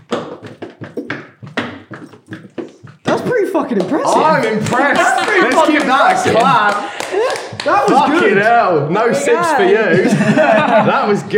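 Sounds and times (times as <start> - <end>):
tap dancing in boots: 0.0 - 6.7
speech: 3.2 - 11.3
laughter: 4.0 - 8.7, 9.5 - 11.3.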